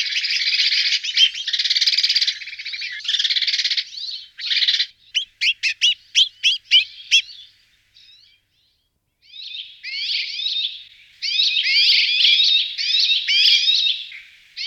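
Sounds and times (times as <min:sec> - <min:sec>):
rock sparrow calls: 0:00.0 - 0:07.5, 0:11.6 - 0:13.8.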